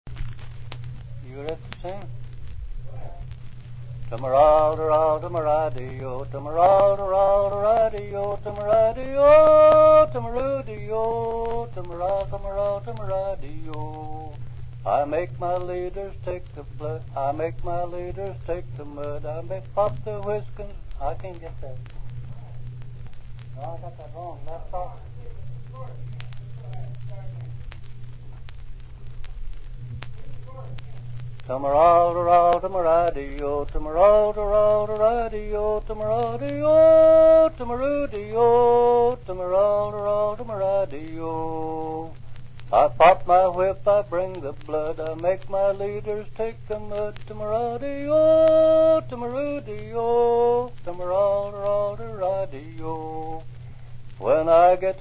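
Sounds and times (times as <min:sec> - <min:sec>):
ox driving work song: 0:04.0 - 0:21.4, 0:31.4 - 0:53.5.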